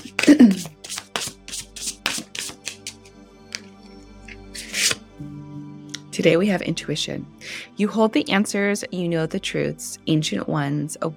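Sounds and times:
oracle cards shuffling: 0.0 - 5.0
speech: 6.2 - 11.1.

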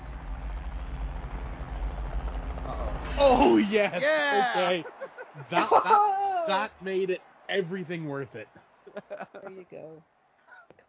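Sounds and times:
helicopter blades whirring: 0.0 - 9.6
laughter: 3.1 - 9.7
speech: 3.2 - 10.1.

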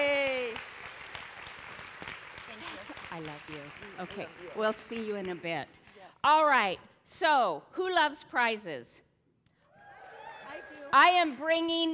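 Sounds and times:
audience applause: 0.0 - 5.4, 9.8 - 11.0
speech: 3.2 - 9.1, 10.9 - 11.9.

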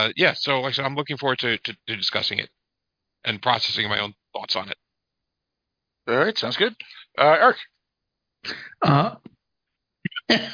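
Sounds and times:
speech: 0.0 - 2.6, 3.2 - 4.8, 6.1 - 7.7, 8.4 - 9.3, 10.3 - 10.5
person coughing after choking on saliva: 8.5 - 9.2, 10.1 - 10.5.

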